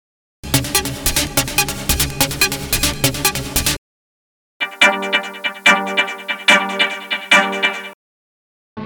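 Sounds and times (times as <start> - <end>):
raw deep techno: 0.4 - 3.8, 4.6 - 7.9.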